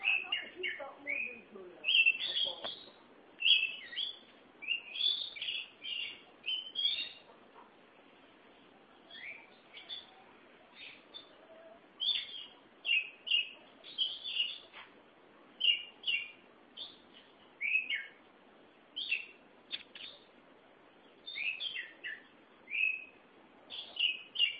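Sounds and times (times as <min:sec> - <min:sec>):
Oriental magpie-robin whistling song: 0:00.0 - 0:07.3, 0:09.1 - 0:10.2, 0:12.0 - 0:14.7, 0:15.6 - 0:17.0, 0:17.6 - 0:18.2, 0:19.0 - 0:20.2, 0:21.2 - 0:24.5.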